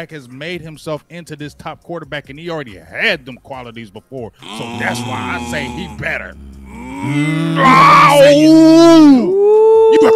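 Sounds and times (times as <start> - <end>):
speech: 0.0 - 10.1
soundboard growl button sound effect: 4.4 - 8.6.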